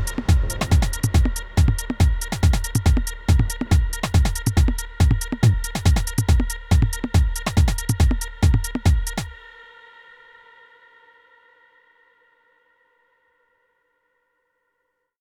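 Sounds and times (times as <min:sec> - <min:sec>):
Korg drumlogue drum machine: 0:00.0 - 0:09.4.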